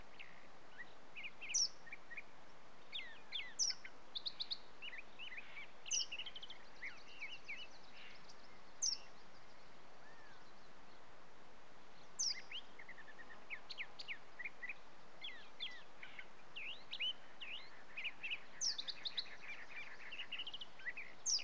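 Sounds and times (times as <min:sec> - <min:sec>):
birds chirping: 0:00.1 - 0:11.1, 0:11.9 - 0:21.4.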